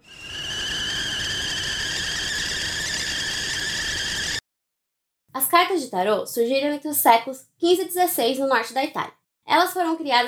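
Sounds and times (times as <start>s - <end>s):
kettle whistling: 0.0s - 4.4s
speech: 5.4s - 10.2s.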